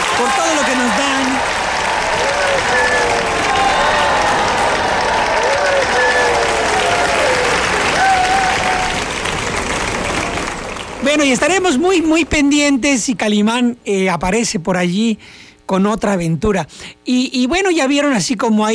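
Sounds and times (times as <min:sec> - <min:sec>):
crowd voices: 0:00.0 - 0:11.0
audience applause at a Spanish-language show: 0:00.0 - 0:12.2
speech: 0:00.2 - 0:01.0, 0:11.1 - 0:18.7.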